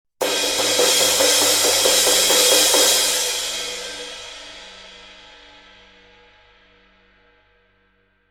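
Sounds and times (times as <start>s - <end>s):
Z402 ride cymbal: 0.2s - 5.2s.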